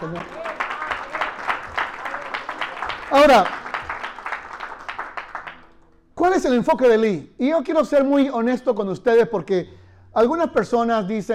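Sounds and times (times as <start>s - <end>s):
speech: 0.0s - 0.4s, 3.1s - 3.6s, 6.2s - 11.3s
audience applauding: 0.0s - 5.8s.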